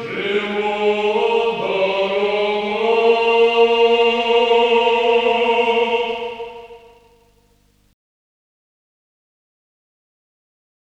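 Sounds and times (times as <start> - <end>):
Orthodox choir singing ancient znamenny chants: 0.0 - 7.4.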